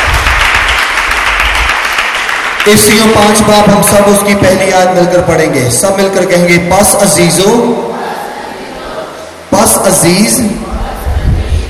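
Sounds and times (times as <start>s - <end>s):
church congregation applause during a Bible reading service: 0.0s - 4.4s
speech: 2.6s - 8.0s, 9.8s - 10.7s.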